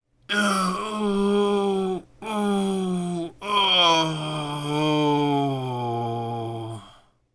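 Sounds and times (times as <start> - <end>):
grunt: 0.3 - 7.0.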